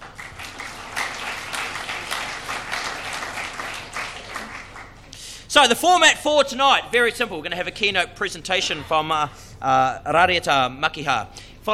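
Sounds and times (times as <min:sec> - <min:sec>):
crowd applauding: 0:00.0 - 0:05.1
speech: 0:05.5 - 0:11.7.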